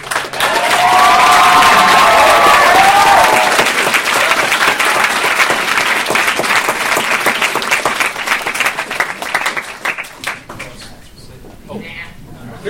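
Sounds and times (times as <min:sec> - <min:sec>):
audience applause: 0:00.0 - 0:10.8
cheers and whoops: 0:00.3 - 0:04.5.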